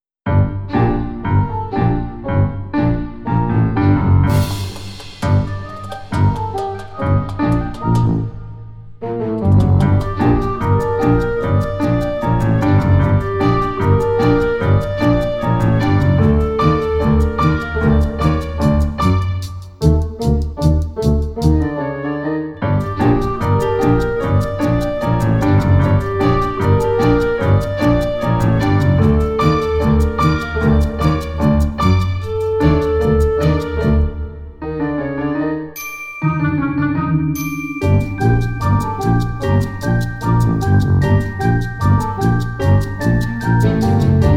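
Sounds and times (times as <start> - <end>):
stereo music: 0.2 - 44.3.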